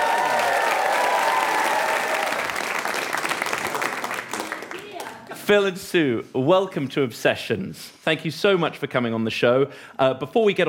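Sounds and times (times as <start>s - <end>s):
studio audience cheering: 0.0s - 4.6s
studio audience applauding a guest's entrance: 0.0s - 5.3s
speech: 5.5s - 10.6s.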